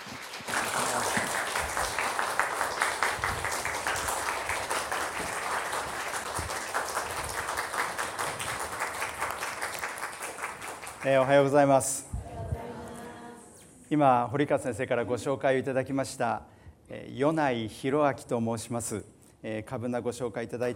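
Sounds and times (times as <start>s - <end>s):
audience applause welcoming a speaker: 0.0s - 11.6s
speech: 11.0s - 12.1s, 13.9s - 16.5s, 17.2s - 20.7s.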